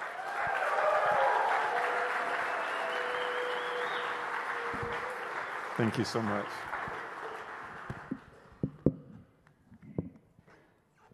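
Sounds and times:
church congregation applause welcoming a speaker: 0.0 - 8.6
speech: 5.8 - 6.7.

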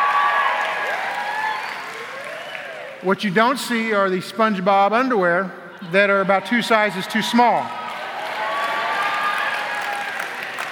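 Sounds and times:
audience applause: 0.0 - 3.0, 7.7 - 10.6
speech: 3.0 - 7.8.

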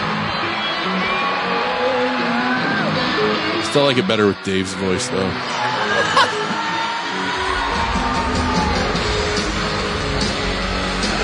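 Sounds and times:
concert crowd cheering: 0.0 - 11.2
speech: 3.7 - 6.4
laughter: 5.5 - 7.0.

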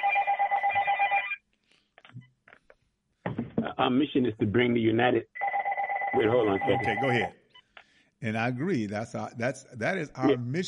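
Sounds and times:
telephone ringing: 0.0 - 1.4, 5.4 - 7.4
speech: 3.8 - 5.4, 6.2 - 7.4, 8.2 - 10.6.

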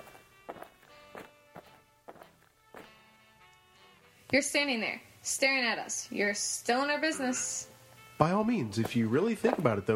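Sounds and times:
footsteps of someone walking over: 0.0 - 3.0, 8.6 - 9.8
hum: 0.0 - 9.9
speech: 4.3 - 9.9.

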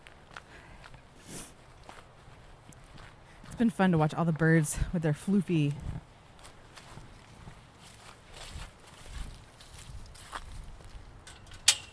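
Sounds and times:
footsteps walking through a garden outdoors: 0.0 - 11.9
speech: 3.6 - 6.0.

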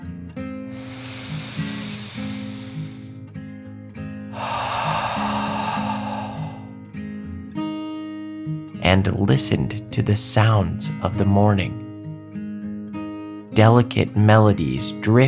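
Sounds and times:
deep breath in and out: 0.7 - 3.3, 4.3 - 6.9
speech: 8.9 - 11.8, 13.6 - 15.2.

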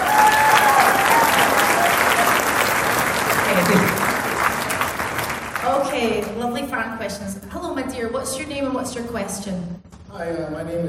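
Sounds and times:
audience round of applause: 0.0 - 6.4
speech: 6.5 - 10.8.

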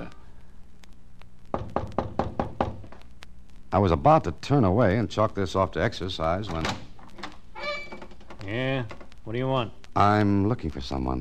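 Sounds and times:
faint room hum: 0.0 - 11.1
knocking on a wooden front door: 1.6 - 2.8
speech: 3.7 - 6.8, 8.5 - 11.1.

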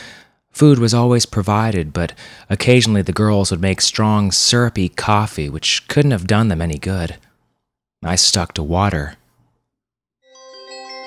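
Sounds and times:
speech: 0.6 - 7.3, 8.0 - 9.2
brass bell with clapper ringing: 10.3 - 11.0.

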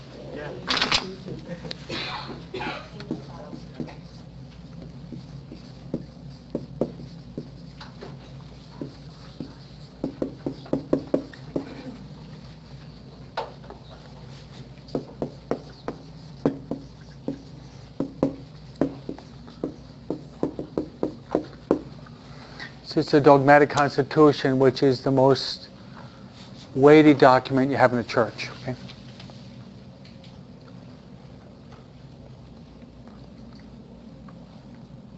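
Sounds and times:
writing on a board: 2.9 - 22.0
speech: 23.0 - 25.6, 26.8 - 28.8.

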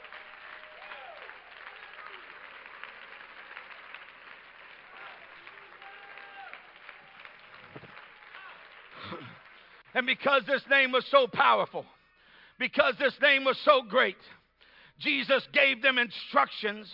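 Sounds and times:
audience clapping hands: 0.0 - 11.0
speech: 10.0 - 12.0, 12.6 - 14.4, 15.0 - 16.9.

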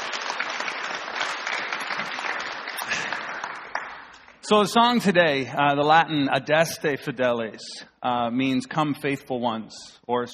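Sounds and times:
audience applause: 0.0 - 4.4
speech: 4.5 - 10.3.

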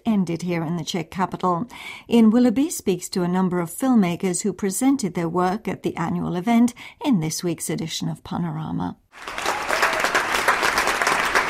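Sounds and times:
speech: 0.2 - 9.5
crowd applauding: 9.2 - 11.4
faint cheering: 9.2 - 11.4.

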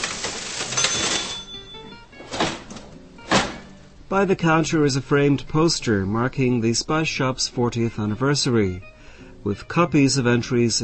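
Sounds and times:
old large metal mechanical cash register being operated: 0.0 - 3.7
speech: 4.1 - 10.8.

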